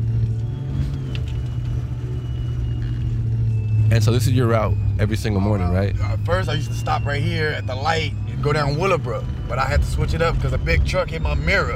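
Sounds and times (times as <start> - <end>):
car engine revving as it drives off: 0.0 - 11.7
speech: 3.9 - 11.7.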